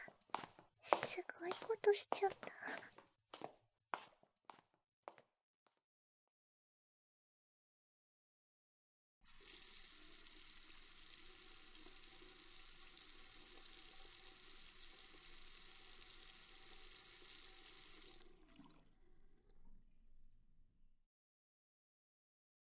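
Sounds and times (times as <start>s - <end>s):
tap water running as someone washes their face: 0.0s - 2.9s, 9.2s - 19.8s
soft footsteps: 0.0s - 5.2s
speech: 1.4s - 3.5s.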